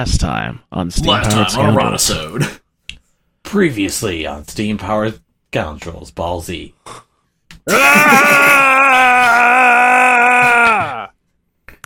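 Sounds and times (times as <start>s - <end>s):
speech: 0.0s - 2.6s, 3.5s - 7.1s, 7.7s - 9.2s
vocal power-up scream imitating a cartoon charging-up sound effect: 7.7s - 11.1s.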